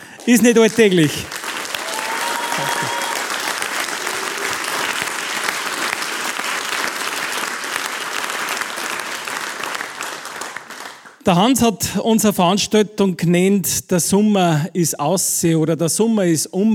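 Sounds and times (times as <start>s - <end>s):
audience applause: 0.0s - 11.2s
speech: 0.2s - 1.4s, 11.2s - 16.7s.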